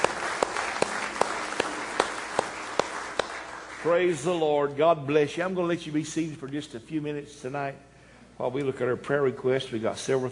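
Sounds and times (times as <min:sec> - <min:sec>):
audience clapping hands in praise: 0:00.0 - 0:04.8
speech: 0:03.8 - 0:10.3.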